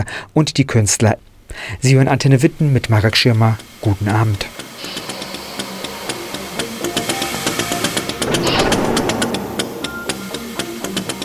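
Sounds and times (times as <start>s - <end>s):
speech: 0.0s - 5.0s
industrial machine noises mixed into music: 4.5s - 11.2s.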